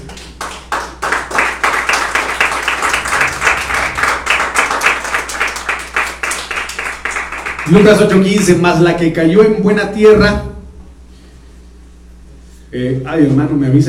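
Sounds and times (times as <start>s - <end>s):
audience applause: 0.0s - 8.6s
speech: 7.7s - 10.6s, 12.8s - 13.8s.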